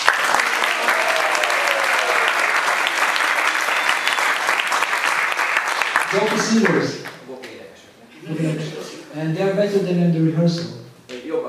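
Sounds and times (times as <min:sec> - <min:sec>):
audience applause: 0:00.0 - 0:07.3
speech: 0:06.2 - 0:07.1, 0:09.2 - 0:10.8
laughter: 0:08.1 - 0:09.2.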